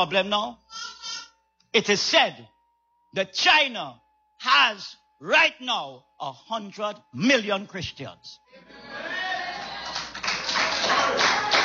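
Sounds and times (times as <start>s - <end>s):
speech: 0.0s - 0.7s, 1.8s - 2.5s, 3.1s - 9.2s
sparse clapping from a few people: 9.9s - 11.6s.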